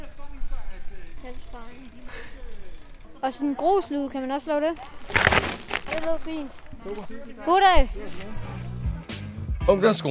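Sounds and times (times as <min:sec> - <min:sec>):
mountain bike freewheel ratchet clicking as wheel spins backwards: 0:00.0 - 0:03.1
speech: 0:03.2 - 0:05.2, 0:06.0 - 0:08.7, 0:09.6 - 0:10.0.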